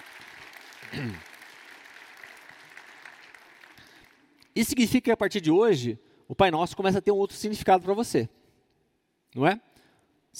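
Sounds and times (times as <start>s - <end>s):
audience applause: 0.0s - 4.2s
speech: 0.9s - 1.3s, 4.6s - 8.4s, 9.3s - 9.7s.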